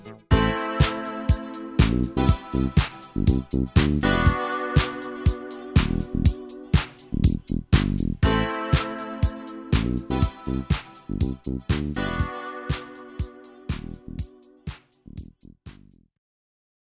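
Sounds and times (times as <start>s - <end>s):
space disco music: 0.0s - 15.1s.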